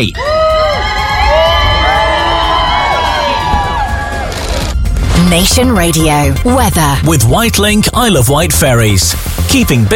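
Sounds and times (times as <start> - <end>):
speech: 0.0 - 0.3, 5.3 - 9.9
crowd cheering the Duke and Duchess of Sussex: 0.0 - 4.8
high whoops and shrill shrieks: 0.2 - 4.6.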